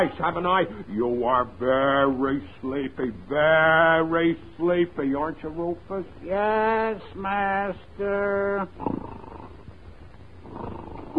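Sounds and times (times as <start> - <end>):
speech: 0.0 - 9.3
person snoring: 8.8 - 9.6, 10.4 - 11.1.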